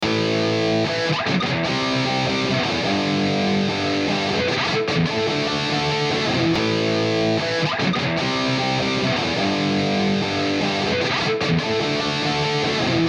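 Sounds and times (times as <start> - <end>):
alternative grunge rock guitar loop: 0.0 - 13.0.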